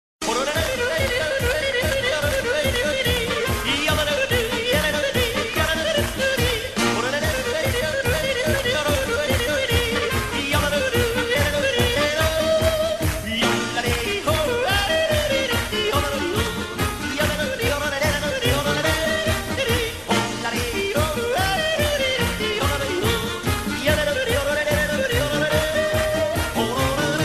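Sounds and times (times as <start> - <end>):
person yodeling: 0.2 - 27.2.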